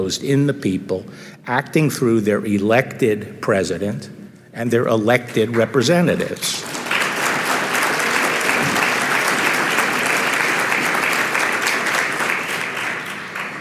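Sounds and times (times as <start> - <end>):
speech: 0.0 - 6.8
audience applause: 6.5 - 13.5.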